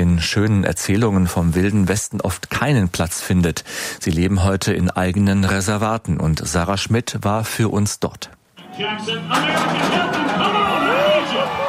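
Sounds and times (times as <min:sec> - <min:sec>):
speech: 0:00.0 - 0:11.6
rodeo crowd cheering: 0:08.6 - 0:11.6
metal gate banging open: 0:09.3 - 0:11.4.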